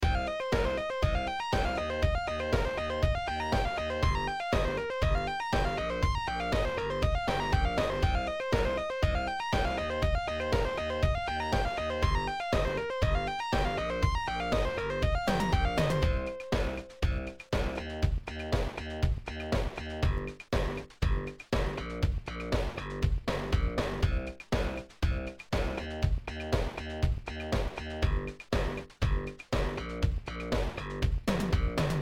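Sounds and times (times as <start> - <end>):
bass lead sound over a beat: 0.0 - 32.0.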